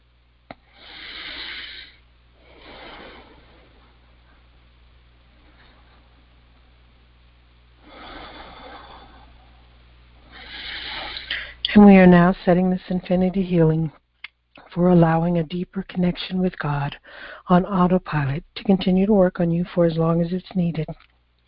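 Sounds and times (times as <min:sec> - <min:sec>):
slow deep breaths during a guided healing session: 0:00.5 - 0:04.5, 0:07.8 - 0:11.7, 0:17.0 - 0:17.5
speech: 0:11.8 - 0:14.0, 0:14.8 - 0:21.1.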